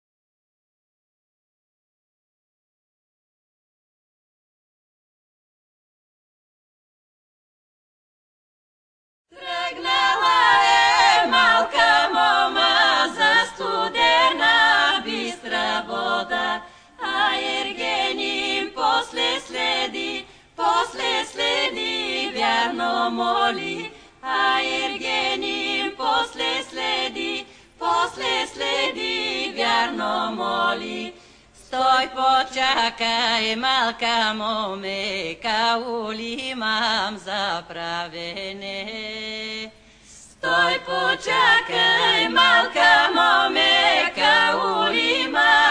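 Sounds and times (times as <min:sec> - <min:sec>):
Bulgarian vocal trio singing live: 0:09.3 - 0:45.7.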